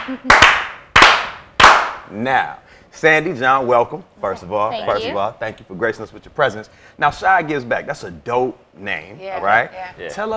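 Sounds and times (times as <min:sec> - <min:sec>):
slow clapping: 0:00.0 - 0:02.0
speech: 0:00.1 - 0:00.7, 0:02.1 - 0:10.3.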